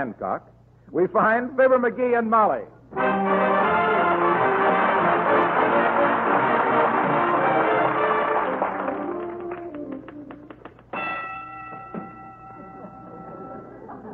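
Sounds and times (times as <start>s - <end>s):
speech: 0.0s - 3.7s
music: 2.9s - 13.9s
typewriter carriage bell ringing: 11.0s - 13.8s.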